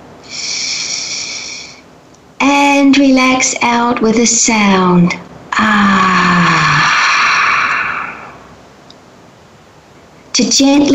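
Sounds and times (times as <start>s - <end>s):
slow deep inhalation during a guided breath exercise: 0.2s - 1.8s, 5.6s - 8.5s
speech: 2.4s - 6.1s, 10.4s - 10.9s.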